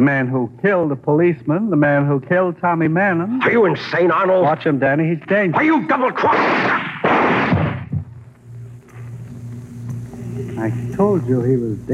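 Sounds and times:
speech: 0.0 - 7.6, 10.6 - 11.9
low steady hum: 0.0 - 11.9
gunshots in a radio crime drama: 6.2 - 8.0.

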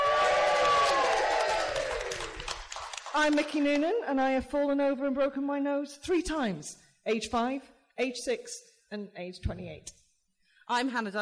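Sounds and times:
live festival audience cheering: 0.0 - 2.8
speech: 3.2 - 10.0, 10.7 - 11.1.

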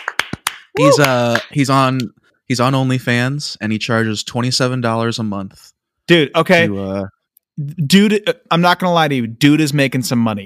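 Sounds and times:
hand clapping: 0.0 - 2.1
speech: 0.8 - 10.4.

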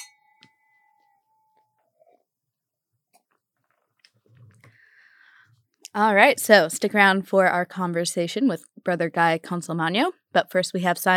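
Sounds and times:
wine glasses clinking in a toast: 0.0 - 1.7
speech: 6.0 - 11.1.

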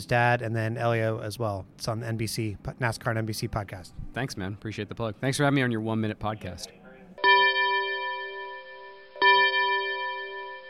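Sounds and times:
speech: 0.0 - 6.8
double chimes: 7.2 - 10.6.

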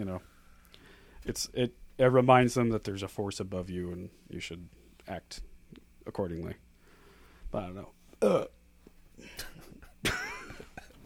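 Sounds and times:
speech: 0.0 - 0.4, 1.2 - 5.5, 6.1 - 6.6, 7.5 - 8.6
loud burp into the microphone: 8.2 - 8.6.

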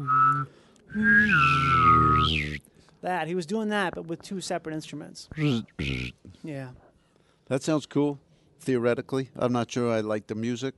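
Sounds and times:
person whistling a high note while humming a low note: 0.0 - 2.6, 5.4 - 6.1
speech: 1.0 - 2.4, 3.0 - 6.8, 7.5 - 10.7.

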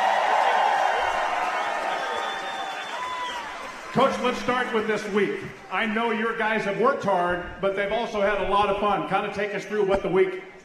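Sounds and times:
crowd clapping and cheering: 0.0 - 6.8
speech: 3.9 - 10.5.

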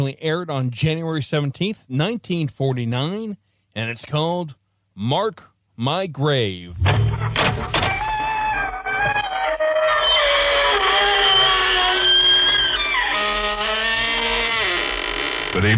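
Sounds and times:
speech: 0.0 - 7.8, 15.6 - 15.7
door creaking open: 6.7 - 15.7.

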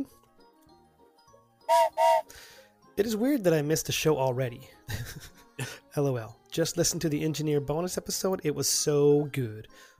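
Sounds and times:
whistle: 1.7 - 2.3
speech: 1.7 - 9.9.

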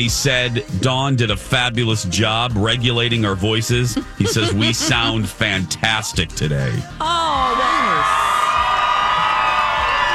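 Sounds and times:
speech: 0.0 - 7.9
laughter: 3.8 - 5.8
crowd cheering and applause: 7.1 - 10.1.

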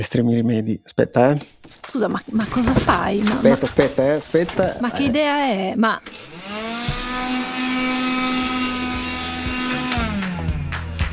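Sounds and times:
speech: 0.0 - 6.3
vacuum cleaner sucking up a mosquito: 6.0 - 10.6.

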